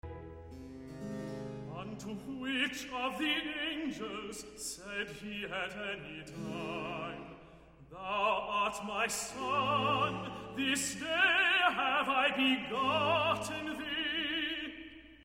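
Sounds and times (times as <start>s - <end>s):
tenor singing a recitative: 1.7s - 15.0s.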